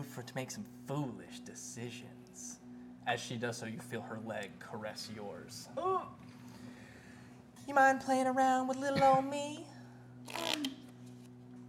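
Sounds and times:
steady low hum: 0:00.0 - 0:11.6
speech: 0:00.1 - 0:06.3, 0:07.7 - 0:09.7
deck of cards being shuffled: 0:10.3 - 0:11.5.

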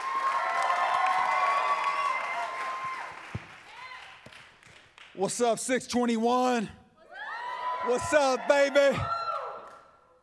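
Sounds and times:
audience applause: 0:00.0 - 0:04.2
speech: 0:05.2 - 0:06.8, 0:07.9 - 0:09.2.

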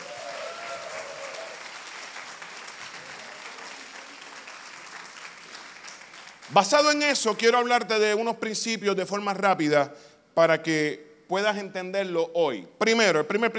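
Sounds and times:
audience applause: 0:00.0 - 0:06.8
speech: 0:06.5 - 0:13.5.

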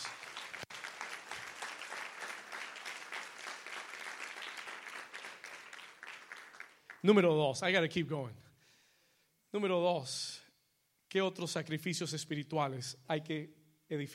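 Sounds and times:
audience applause: 0:00.0 - 0:07.0
speech: 0:07.0 - 0:08.5, 0:09.5 - 0:10.4, 0:11.1 - 0:14.1.

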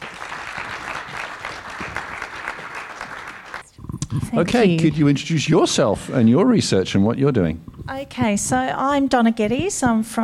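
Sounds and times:
audience applause welcoming an associate professor of lactation research: 0:00.0 - 0:03.8
speech: 0:04.2 - 0:10.2.

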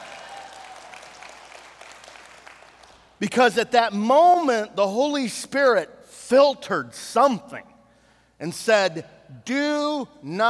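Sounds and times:
audience applause: 0:00.0 - 0:03.0
speech: 0:03.2 - 0:07.7, 0:08.4 - 0:10.4.

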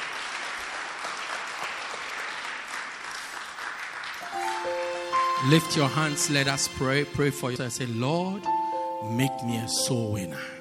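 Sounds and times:
audience clapping: 0:00.0 - 0:06.6
speech: 0:05.4 - 0:10.5.

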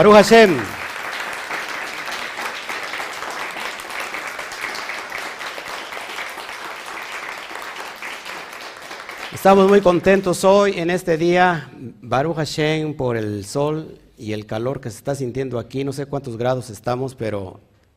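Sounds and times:
speech: 0:00.0 - 0:00.8, 0:09.4 - 0:17.7
loud applause: 0:00.0 - 0:10.2.

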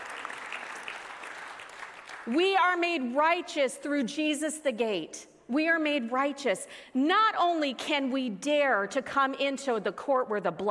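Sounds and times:
audience clapping: 0:00.0 - 0:02.5
speech: 0:02.3 - 0:10.6.

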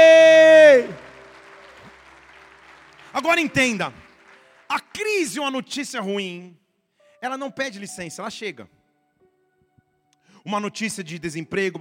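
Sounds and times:
audience applauding: 0:00.0 - 0:05.7
speech: 0:03.2 - 0:04.0, 0:04.7 - 0:06.6, 0:07.2 - 0:08.8, 0:10.4 - 0:11.7.

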